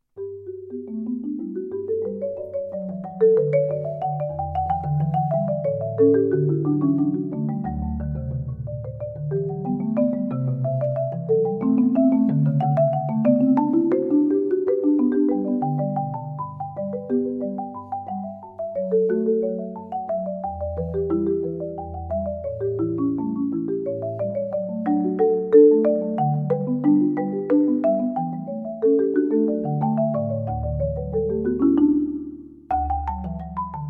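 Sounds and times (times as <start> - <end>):
marimba: 0.2 - 33.8.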